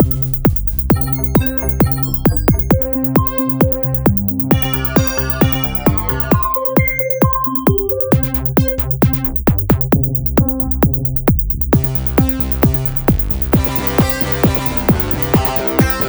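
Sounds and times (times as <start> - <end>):
Casio VZ-1 synthesizer: 0.0 - 16.0.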